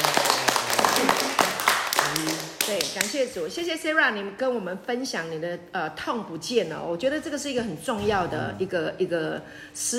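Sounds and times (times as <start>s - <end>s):
audience applause: 0.0s - 3.1s
speech: 3.0s - 9.9s.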